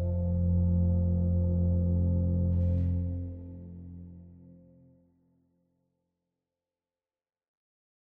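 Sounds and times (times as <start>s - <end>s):
OrganTeq reed organ solo: 0.0s - 4.6s.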